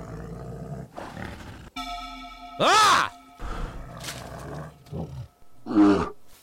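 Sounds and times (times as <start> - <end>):
bear roaring and growling: 0.0 - 1.7
speech: 2.6 - 3.1.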